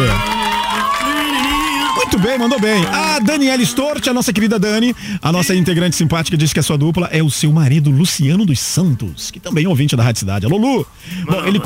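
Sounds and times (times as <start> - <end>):
audience applause and cheering: 0.0 - 4.6
speech: 2.2 - 11.6.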